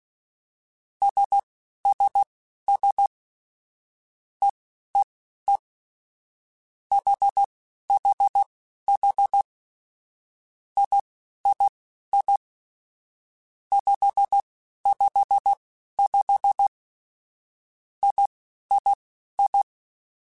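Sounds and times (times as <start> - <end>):
morse code beeps: 1.0 - 3.1, 6.9 - 9.5, 10.8 - 12.4, 13.7 - 16.7, 18.0 - 19.7.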